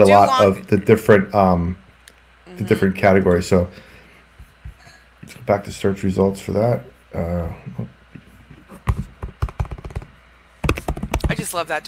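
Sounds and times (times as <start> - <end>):
speech: 0.0 - 1.8, 2.6 - 3.9, 5.2 - 8.0, 8.9 - 9.1, 11.5 - 11.8
tapping on a computer keyboard: 8.9 - 11.4.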